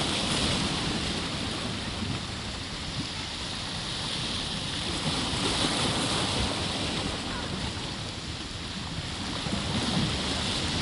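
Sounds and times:
gentle waves washing at the tip of Key West: 0.0s - 10.8s.

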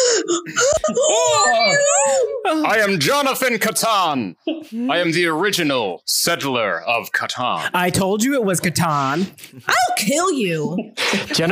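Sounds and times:
laughter: 0.5s - 2.3s, 10.6s - 11.5s
group of people screaming in fright: 1.0s - 2.3s
speech: 2.5s - 11.5s.

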